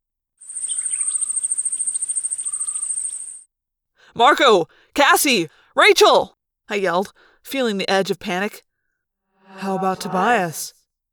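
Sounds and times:
high-pitched jungle insect drone: 0.4 - 3.4
jungle bird chirps: 0.5 - 3.4
speech: 4.1 - 8.7, 9.5 - 10.8.

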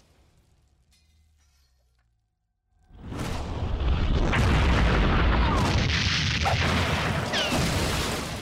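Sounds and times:
cartoon explosion sound effect: 3.4 - 8.3.

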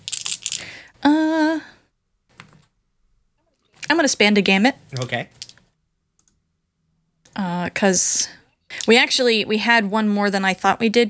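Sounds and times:
dice being rolled: 0.0 - 0.7, 5.0 - 5.6, 8.7 - 9.1
speech: 4.0 - 5.4, 7.8 - 11.0.

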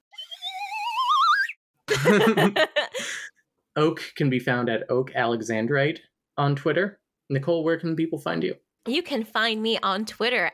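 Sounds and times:
slide whistle sound effect: 0.0 - 1.6
laughter: 1.9 - 3.1
speech: 2.0 - 3.2, 3.8 - 10.5.

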